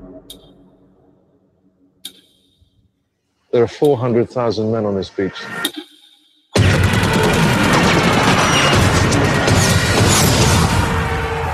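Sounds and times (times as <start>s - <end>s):
speech: 3.6s - 5.9s
rapid gunfire in a war film trailer: 6.6s - 10.9s
crashes and booms in a war film trailer: 6.6s - 11.5s.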